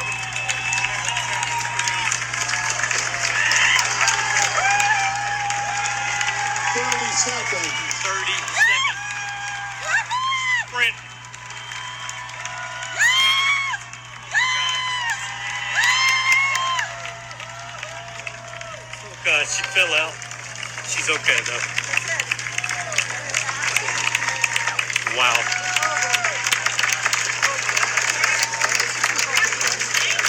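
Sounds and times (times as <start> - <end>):
loud rising whoops and shrill shouts: 0.0 - 19.7, 22.6 - 26.6
cheering crowd at race finish: 0.0 - 30.2
speech: 7.2 - 8.8, 10.8 - 11.0, 19.5 - 20.2, 21.0 - 21.8, 25.2 - 25.6.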